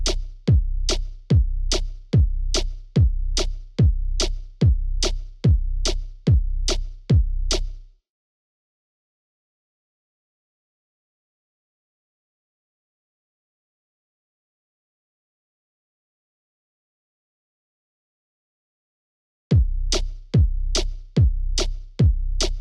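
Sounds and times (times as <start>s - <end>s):
music beat: 0.0s - 7.8s, 19.5s - 22.5s.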